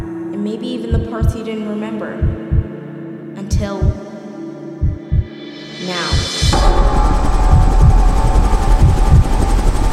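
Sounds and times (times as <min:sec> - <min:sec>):
speech: 0:00.4 - 0:02.5, 0:03.6 - 0:04.0, 0:05.8 - 0:07.0
helicopter flying: 0:06.3 - 0:09.9.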